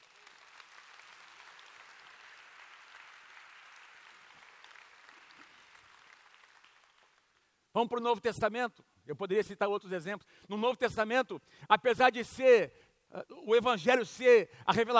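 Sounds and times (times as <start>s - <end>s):
crowd clapping: 0.0s - 7.5s
speech: 7.8s - 14.9s.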